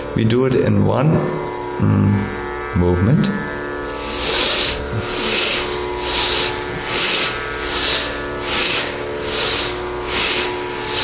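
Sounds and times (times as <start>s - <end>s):
speech: 0.2s - 3.6s
Bhastrika Pranayama rapid breathing through the nose: 3.9s - 11.0s.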